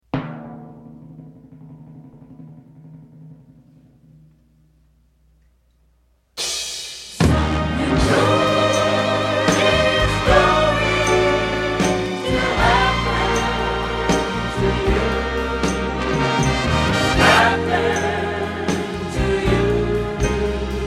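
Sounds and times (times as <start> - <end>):
band playing: 7.2 - 20.8
vocals singing: 7.2 - 20.8.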